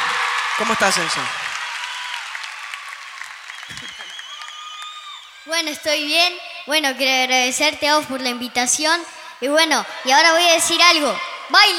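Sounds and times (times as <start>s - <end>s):
audience applause: 0.0s - 5.5s
speech: 0.6s - 1.4s, 5.5s - 11.7s.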